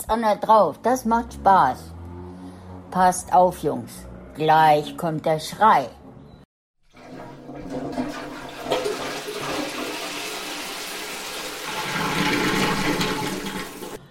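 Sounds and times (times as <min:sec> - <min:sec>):
speech: 0:00.0 - 0:02.0, 0:02.9 - 0:06.0
toilet flushing: 0:06.8 - 0:14.0.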